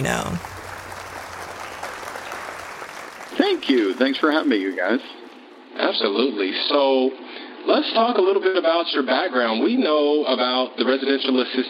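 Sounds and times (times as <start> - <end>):
speech: 0.0 - 0.6, 3.4 - 5.2, 5.8 - 11.6
audience applause: 0.0 - 5.5.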